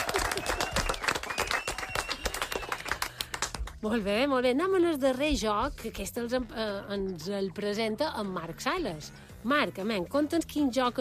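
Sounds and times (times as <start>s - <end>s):
crowd applauding loudly: 0.0s - 3.6s
speech: 3.8s - 10.9s.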